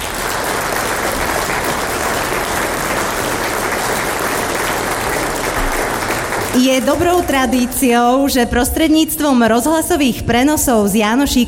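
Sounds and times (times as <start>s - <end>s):
big applause: 0.0s - 8.0s
speech: 6.6s - 11.4s.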